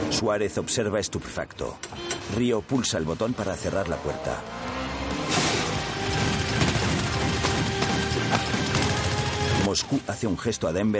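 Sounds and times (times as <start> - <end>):
speech: 0.1 - 4.6, 9.7 - 10.9
gunfire: 5.3 - 9.7.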